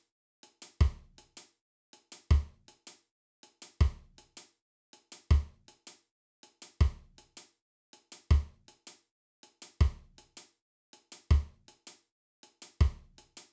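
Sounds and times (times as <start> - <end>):
reggae drum beat: 0.8 - 1.1, 3.8 - 4.4, 5.3 - 5.5, 6.8 - 7.4, 8.3 - 8.5, 9.8 - 10.4, 11.3 - 11.5, 12.8 - 13.4.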